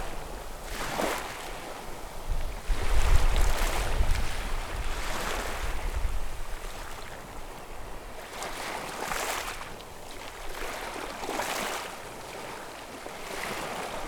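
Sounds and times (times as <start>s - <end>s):
beach tide on rocks at the end of a trail in Seahurst: 0.0s - 14.0s.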